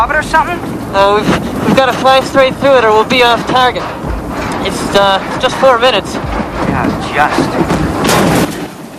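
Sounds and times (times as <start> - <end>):
speech: 0.0 - 4.0, 4.6 - 7.8
flak bursts slamming into the WWII bomber Memphis Belle in flight: 6.2 - 8.9.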